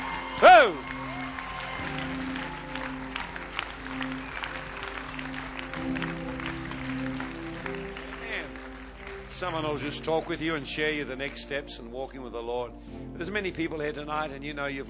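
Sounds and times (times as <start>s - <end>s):
crowd applause: 0.0s - 10.6s
speech: 0.6s - 1.1s, 9.4s - 14.8s.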